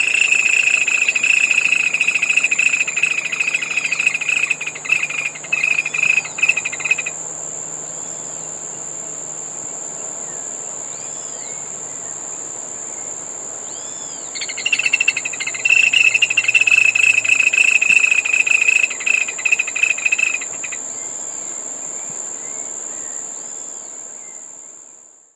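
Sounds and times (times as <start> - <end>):
Laterallus viridis calling: 0.0 - 7.2, 14.3 - 20.8.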